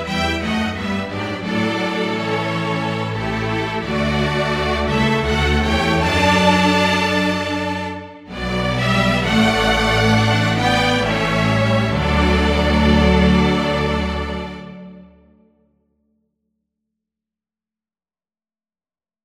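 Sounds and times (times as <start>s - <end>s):
string orchestra: 0.0s - 15.4s.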